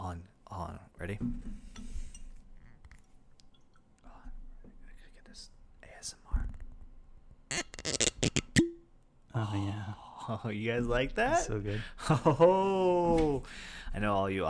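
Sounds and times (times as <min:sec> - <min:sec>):
speech: 0:01.0 - 0:01.6, 0:10.3 - 0:14.4
quiet whispering: 0:04.0 - 0:06.7
whiskey bottle cork popping out: 0:07.5 - 0:08.9
laughter: 0:12.0 - 0:13.2.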